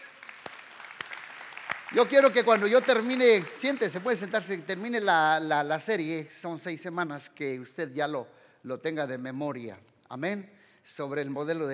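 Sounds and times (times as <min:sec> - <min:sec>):
audience applause: 0:00.0 - 0:04.8
speech: 0:01.9 - 0:11.7.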